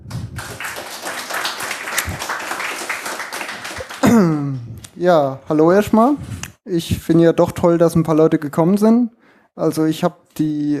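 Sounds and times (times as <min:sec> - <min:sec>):
audience applause: 0:00.3 - 0:04.0
speech: 0:04.1 - 0:10.7.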